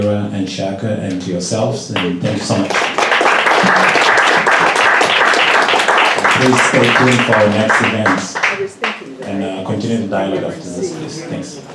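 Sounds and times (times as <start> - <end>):
speech: 0.0 - 4.0, 6.4 - 11.7
warm audience round of applause: 2.0 - 9.1.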